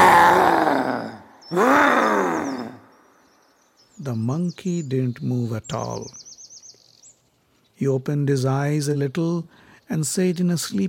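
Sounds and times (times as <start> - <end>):
person roaring loudly to scare an animal: 0.0 - 2.9
speech: 4.0 - 6.3, 7.8 - 10.8.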